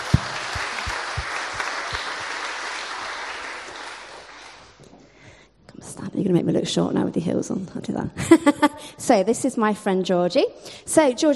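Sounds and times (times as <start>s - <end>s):
audience applause: 0.0s - 4.7s
speech: 6.2s - 11.3s.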